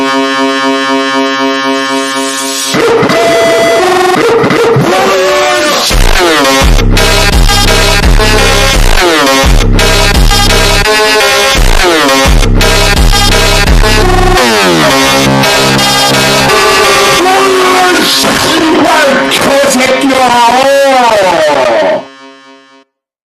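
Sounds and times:
slowed Korean funk music with reverb: 0.0s - 22.8s.

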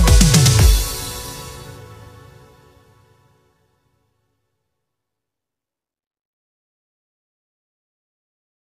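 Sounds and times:
italo disco instrumental cover: 0.0s - 2.9s.

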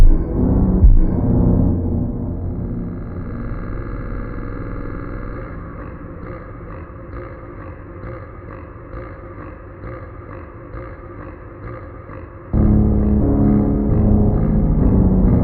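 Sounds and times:
montagem super slowed reverb music: 0.0s - 7.9s, 12.6s - 15.4s.

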